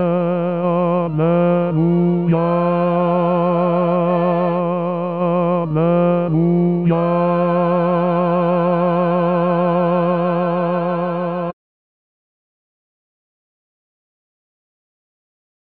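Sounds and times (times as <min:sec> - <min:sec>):
bass voices singing: 0:00.0 - 0:11.6.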